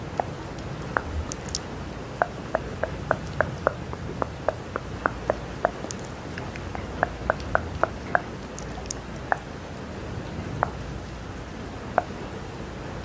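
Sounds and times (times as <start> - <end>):
wet mouth sounds clicking and smacking: 0.0 - 9.5
rain hissing: 0.0 - 13.0.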